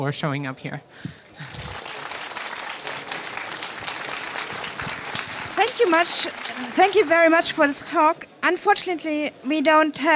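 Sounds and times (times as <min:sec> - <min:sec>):
speech: 0:00.0 - 0:01.6, 0:05.6 - 0:10.1
audience applause after a talk: 0:01.4 - 0:07.8.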